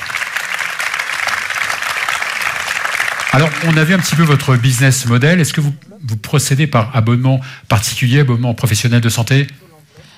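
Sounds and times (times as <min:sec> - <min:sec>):
audience applause: 0:00.0 - 0:05.6
speech: 0:03.3 - 0:09.6.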